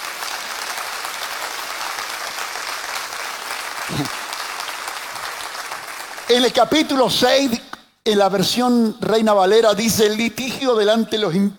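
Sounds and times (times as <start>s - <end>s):
audience applause: 0.0s - 6.6s
speech: 3.9s - 4.2s, 6.3s - 11.5s.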